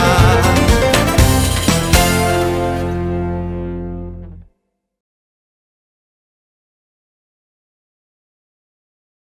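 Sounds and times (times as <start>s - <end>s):
birthday song in Javanese: 0.0s - 3.6s.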